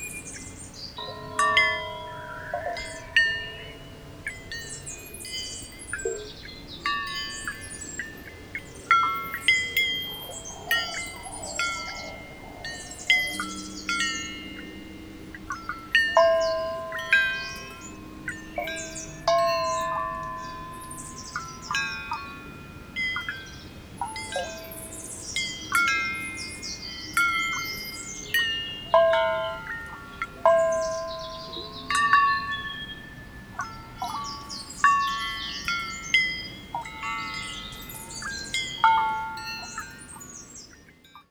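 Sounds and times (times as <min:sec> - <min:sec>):
birds: 0:00.0 - 0:41.2
water: 0:00.0 - 0:41.2.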